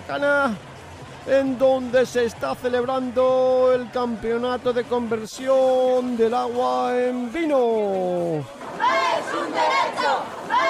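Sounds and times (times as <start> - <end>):
speech: 0.1 - 10.6
angry crowd shouting at a staged comic wedding banquet: 3.4 - 10.6.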